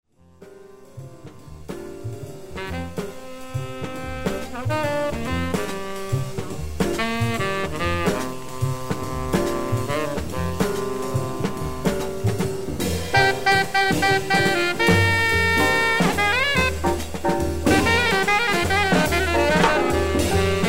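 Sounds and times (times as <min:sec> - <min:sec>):
spiritual jazz in dorian mode: 0:00.2 - 0:20.6.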